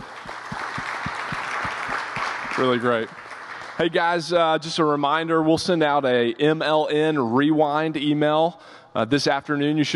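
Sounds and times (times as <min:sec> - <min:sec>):
audience applause: 0:00.0 - 0:04.0
speech: 0:02.6 - 0:03.2, 0:03.8 - 0:09.9.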